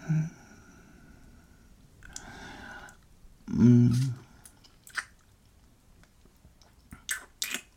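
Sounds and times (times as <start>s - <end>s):
biting and chewing a sweet juicy fruit: 3.9s - 7.7s.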